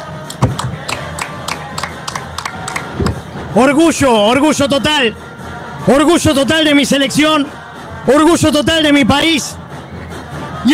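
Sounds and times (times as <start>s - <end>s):
applause: 0.2s - 3.2s
speech: 3.6s - 9.6s.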